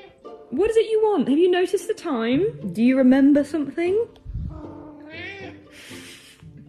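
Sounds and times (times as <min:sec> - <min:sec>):
cat meowing for dinner: 0:00.0 - 0:00.2, 0:04.5 - 0:05.6
speech: 0:00.5 - 0:04.2.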